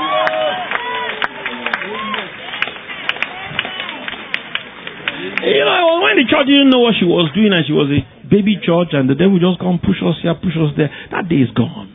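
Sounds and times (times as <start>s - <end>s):
audience clapping: 0.0s - 6.0s
audience calling out and cheering: 0.0s - 7.0s
speech: 6.1s - 11.9s.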